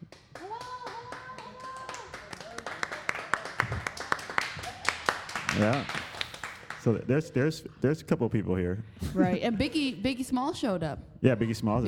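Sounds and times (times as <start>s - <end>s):
small group clapping: 0.0s - 7.1s
speech: 5.6s - 6.0s, 6.8s - 11.8s.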